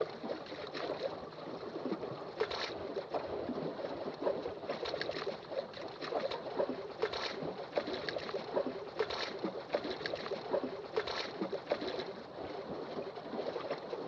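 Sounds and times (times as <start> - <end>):
lapping waves: 0.0 - 14.0.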